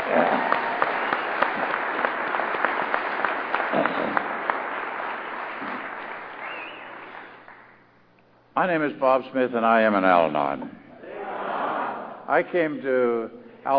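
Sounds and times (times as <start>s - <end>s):
audience applause for a volunteer committee at an Al-Anon gathering: 0.0s - 7.7s
speech: 8.6s - 10.8s, 12.3s - 13.7s.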